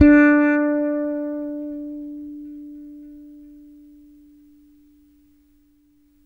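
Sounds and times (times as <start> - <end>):
6-string fretless bass: 0.0 - 4.1.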